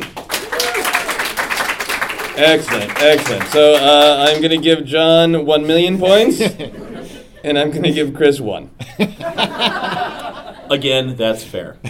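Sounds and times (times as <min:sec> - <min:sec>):
audience applauding: 0:00.0 - 0:04.7
speech: 0:02.4 - 0:06.8, 0:07.4 - 0:11.8
laughter: 0:06.1 - 0:08.2, 0:08.8 - 0:10.9.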